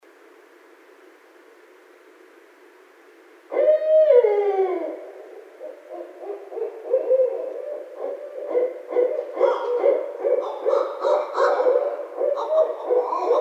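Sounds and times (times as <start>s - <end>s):
barred owl hooting: 3.5s - 13.3s.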